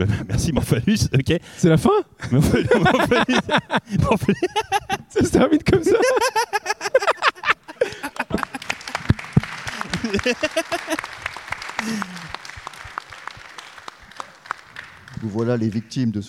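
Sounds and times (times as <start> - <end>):
speech: 0.0 - 7.1, 10.1 - 11.1, 15.2 - 16.2
laughter: 2.2 - 13.3
audience applause: 6.2 - 16.0.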